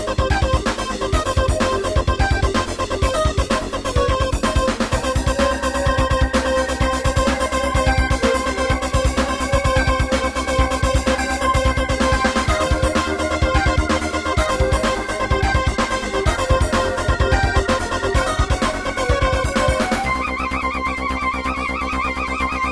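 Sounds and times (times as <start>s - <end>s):
Roland SC-8820 sounds: 0.0s - 22.7s.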